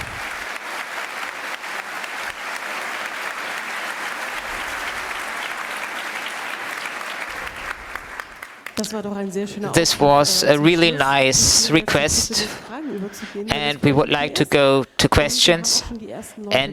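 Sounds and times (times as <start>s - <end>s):
audience applause: 0.0s - 9.0s, 9.7s - 15.9s
laughter: 1.9s - 16.7s
speech: 8.8s - 16.7s.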